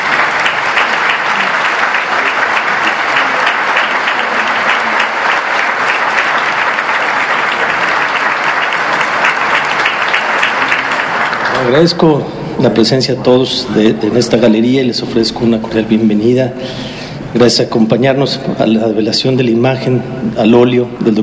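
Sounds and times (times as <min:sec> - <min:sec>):
audience applause: 0:00.0 - 0:12.1
speech: 0:11.7 - 0:21.2.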